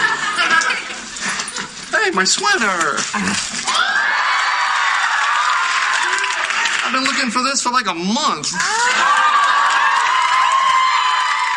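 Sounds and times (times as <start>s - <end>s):
laughter: 0.0s - 1.8s, 8.6s - 10.2s
speech: 2.1s - 3.8s, 6.9s - 9.2s
studio audience cheering and whooping: 3.6s - 7.1s, 8.6s - 11.5s.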